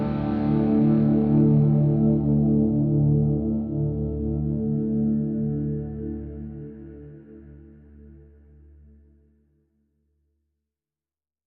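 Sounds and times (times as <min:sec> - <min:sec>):
synth pads: 0:00.0 - 0:07.7.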